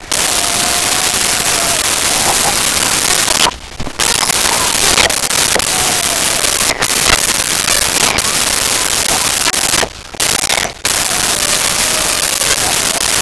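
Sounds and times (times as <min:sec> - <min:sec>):
small child crying: 0:00.1 - 0:03.5, 0:04.2 - 0:09.8, 0:10.9 - 0:13.2.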